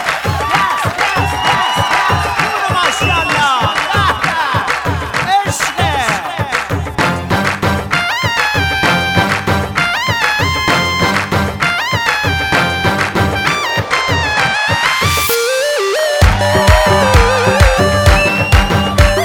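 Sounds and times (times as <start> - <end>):
crowd whistling: 0.0 - 5.2, 13.4 - 19.2
crowd clapping: 0.0 - 15.5, 16.2 - 19.2.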